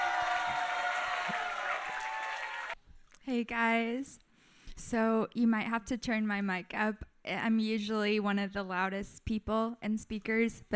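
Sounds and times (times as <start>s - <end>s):
audience applause and cheering welcoming a speaker: 0.0s - 2.8s
speech: 3.3s - 4.2s, 4.8s - 10.7s.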